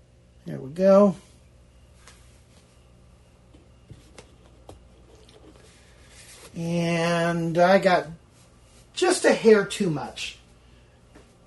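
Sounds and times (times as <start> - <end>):
speech: 0.5 - 1.3, 6.6 - 8.2, 9.0 - 10.4
liquid soap being poured: 4.9 - 5.8.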